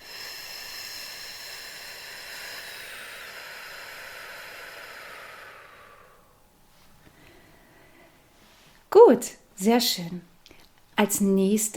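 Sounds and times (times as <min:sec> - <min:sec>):
slow breath blown out through the lips: 0:00.0 - 0:08.8
speech: 0:09.0 - 0:10.3, 0:11.0 - 0:11.7.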